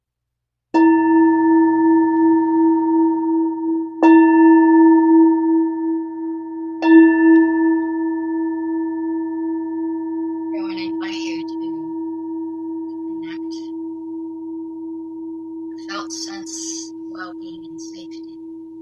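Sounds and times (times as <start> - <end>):
meditation bell ringing: 0.8 - 18.8.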